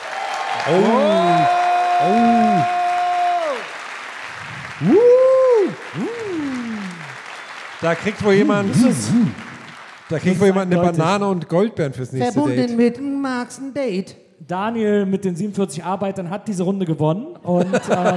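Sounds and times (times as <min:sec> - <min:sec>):
audience applause: 0:00.0 - 0:11.3
speech: 0:00.6 - 0:02.8, 0:04.8 - 0:05.1, 0:07.8 - 0:09.4, 0:10.1 - 0:18.1
laughter: 0:07.9 - 0:09.7, 0:17.5 - 0:18.1.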